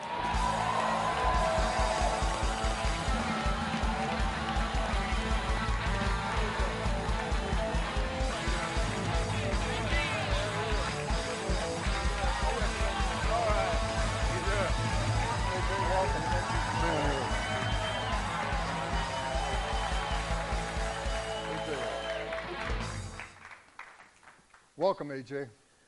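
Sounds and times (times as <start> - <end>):
large live audience cheering and applauding: 0.0 - 24.7
speech: 24.8 - 25.6.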